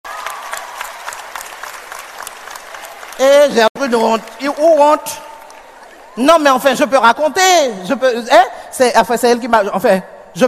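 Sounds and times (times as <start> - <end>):
audience applause: 0.0 - 6.3
speech: 3.2 - 5.3, 6.2 - 10.4.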